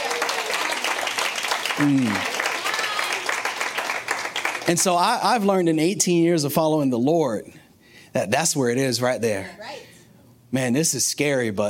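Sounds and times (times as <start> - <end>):
audience clapping: 0.0 - 5.4
speech: 1.8 - 2.3, 4.7 - 7.6, 8.2 - 9.9, 10.5 - 11.6.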